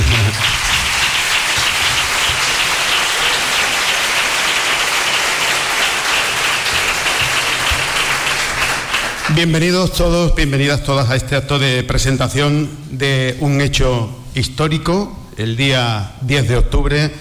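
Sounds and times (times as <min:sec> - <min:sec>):
audience applauding: 0:00.0 - 0:09.8
speech: 0:09.4 - 0:17.1.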